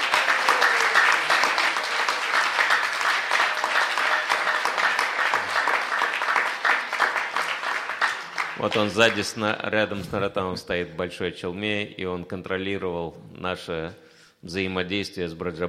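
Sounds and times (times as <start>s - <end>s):
crowd applause: 0.0s - 9.4s
speech: 8.6s - 15.6s.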